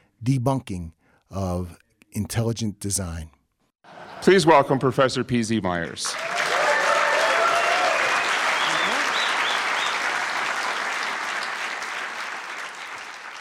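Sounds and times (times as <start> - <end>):
speech: 0.2 - 6.4
large audience clapping for a speaker: 6.0 - 13.3
faint voices and whoops: 6.2 - 9.3.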